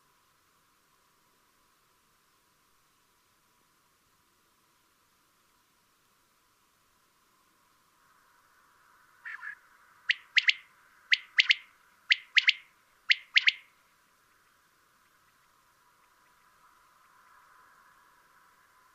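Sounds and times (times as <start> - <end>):
common quail calling a three-note phrase: 9.2 - 13.7.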